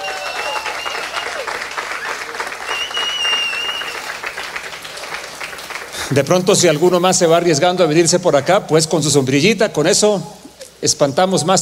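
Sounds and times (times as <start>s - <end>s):
audience applause: 0.0s - 7.4s
speech: 6.1s - 11.6s.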